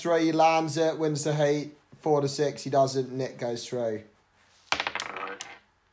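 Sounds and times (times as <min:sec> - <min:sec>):
speech: 0:00.0 - 0:04.1
dice being rolled: 0:04.6 - 0:05.7.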